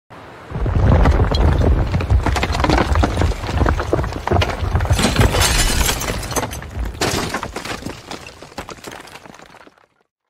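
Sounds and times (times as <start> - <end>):
house collapsing: 0.4 - 10.1.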